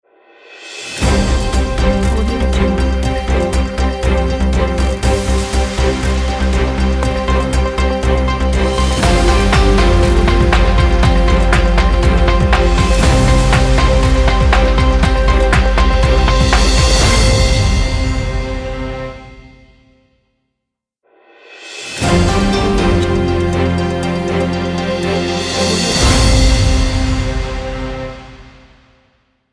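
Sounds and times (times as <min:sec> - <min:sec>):
news logo intro jingle: 0:01.0 - 0:19.8, 0:22.0 - 0:28.7.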